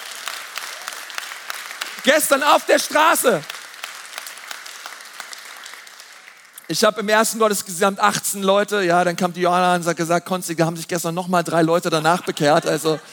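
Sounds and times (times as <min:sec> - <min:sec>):
audience applause: 0:00.0 - 0:06.8
speech: 0:02.0 - 0:03.5, 0:06.7 - 0:13.1.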